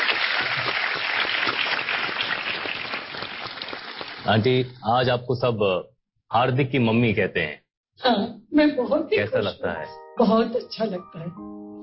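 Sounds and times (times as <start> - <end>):
crowd clapping: 0.0 - 4.7
speech: 4.3 - 11.5.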